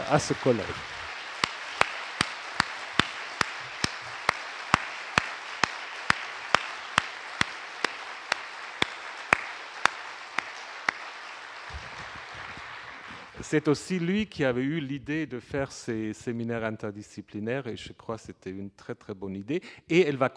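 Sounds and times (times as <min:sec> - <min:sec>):
audience applause: 0:00.0 - 0:13.6
speech: 0:00.1 - 0:01.0, 0:13.5 - 0:20.3.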